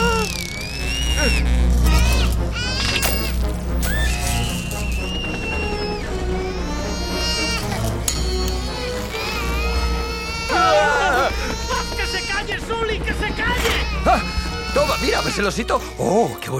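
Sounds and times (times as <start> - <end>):
small child crying: 0.0 - 15.6
speech: 15.4 - 16.5.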